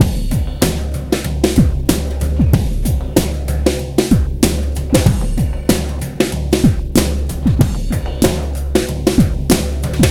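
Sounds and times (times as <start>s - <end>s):
breakbeat drums: 0.0s - 10.0s.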